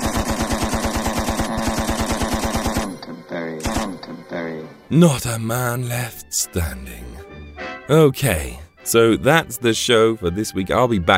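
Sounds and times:
machine gun fire sound effect: 0.0s - 3.0s, 3.6s - 4.0s
speech: 4.9s - 7.3s, 7.9s - 11.1s.

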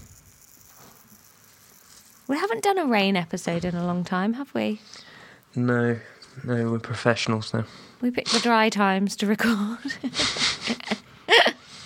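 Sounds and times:
gold sand timer rattling and hissing: 0.0s - 3.7s
speech: 2.3s - 11.5s.

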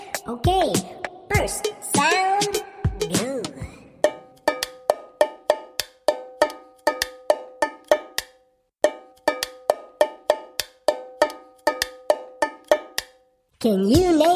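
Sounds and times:
speech: 0.2s - 3.2s, 13.6s - 14.3s
drumming on an empty aluminum peanut can: 4.1s - 13.1s.

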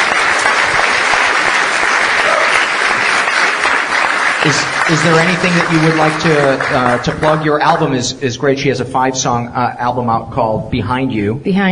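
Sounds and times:
round of applause: 0.0s - 8.0s
speech: 4.4s - 11.7s.

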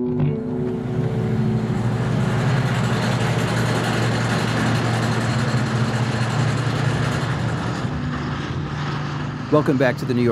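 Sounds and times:
compressors used in fracking: 0.1s - 10.2s
hydraulic drills used in fracking: 0.9s - 8.1s
speech: 9.6s - 10.2s.

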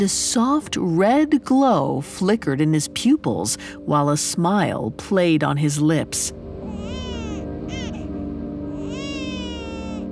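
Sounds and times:
speech: 0.0s - 6.4s
baby crying: 6.6s - 10.1s.

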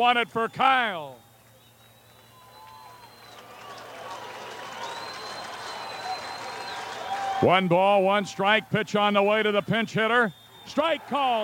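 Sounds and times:
speech: 0.0s - 1.2s, 7.4s - 11.4s
shrill whistles: 0.0s - 7.5s, 9.0s - 11.4s
scattered clapping: 1.4s - 7.7s
ballpark crowd roaring: 2.6s - 8.7s, 10.8s - 11.4s.

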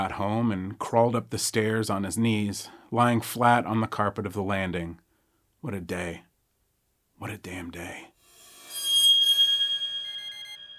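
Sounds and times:
speech: 0.0s - 5.0s, 5.6s - 6.3s, 7.2s - 8.1s
faint bedroom alarm ringing: 8.4s - 10.7s.

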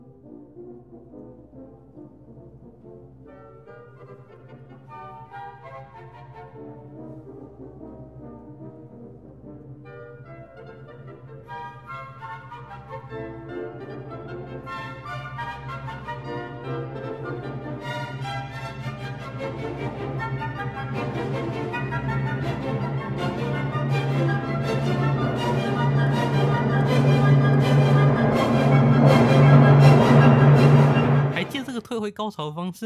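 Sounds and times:
speech: 0.8s - 15.8s, 31.4s - 32.8s
full orchestra playing bold brass fanfare: 22.1s - 31.8s
low sustained drone: 23.1s - 31.4s.

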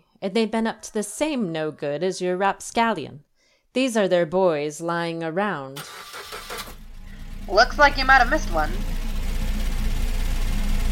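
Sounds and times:
speech: 0.2s - 6.2s, 7.5s - 8.9s
truck engine rumbling as it drives: 5.9s - 10.9s.

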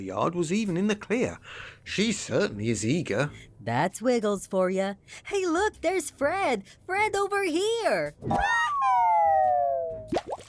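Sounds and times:
speech: 0.0s - 9.3s
descending cartoon whistle of a crash landing: 8.4s - 10.1s
watery plops of a crash into a pond: 10.1s - 10.4s.

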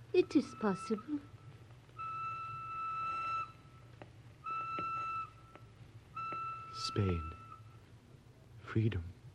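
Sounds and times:
speech: 0.1s - 1.3s, 7.0s - 7.3s, 8.7s - 9.1s
train whistle: 2.0s - 3.8s, 4.4s - 5.5s, 6.1s - 7.8s.

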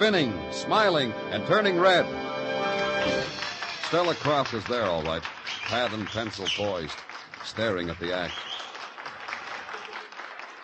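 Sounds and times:
speech: 0.0s - 2.3s, 3.0s - 8.5s
audience applause: 3.0s - 10.6s.

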